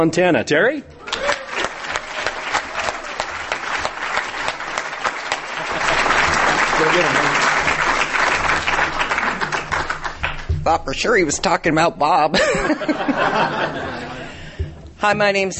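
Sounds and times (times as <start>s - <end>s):
speech: 0.0s - 1.2s, 10.6s - 14.2s, 15.0s - 15.5s
audience applause: 1.0s - 10.5s
laughter: 5.2s - 9.8s, 12.3s - 14.6s.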